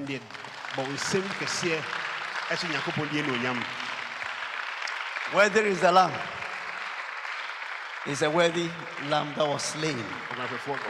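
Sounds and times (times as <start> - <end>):
audience applause: 0.0 - 10.8
speech: 0.1 - 3.8, 5.3 - 6.4, 8.0 - 10.8.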